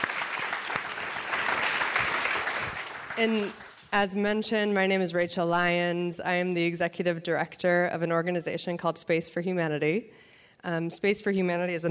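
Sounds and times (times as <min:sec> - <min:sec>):
audience applause: 0:00.0 - 0:03.9
speech: 0:03.2 - 0:11.8.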